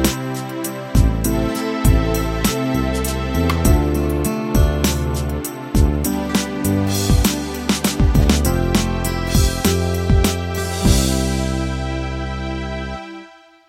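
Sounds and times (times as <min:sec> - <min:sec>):
16 beat ballad: 0:00.0 - 0:13.4.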